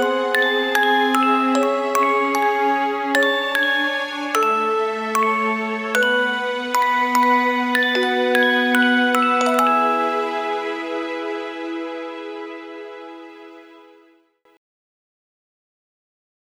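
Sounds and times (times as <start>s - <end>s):
music box melody: 0.0s - 11.4s.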